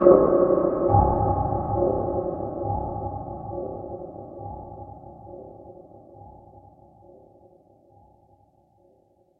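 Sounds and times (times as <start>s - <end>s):
boom with long delay: 0.0s - 6.4s
muted resonant cinematic impact: 0.0s - 6.7s.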